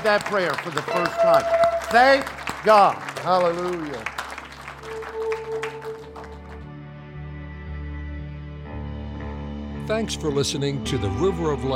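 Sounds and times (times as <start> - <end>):
speech: 0.0 - 4.2, 9.9 - 11.7
church audience applause: 0.0 - 6.7.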